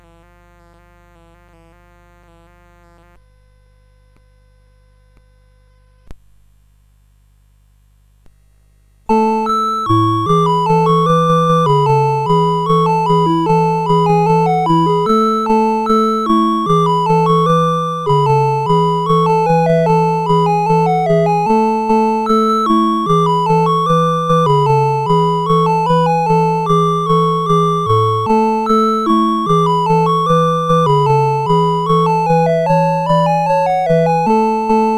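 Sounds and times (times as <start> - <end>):
CSG 8580 sound chip: 9.1 - 34.9.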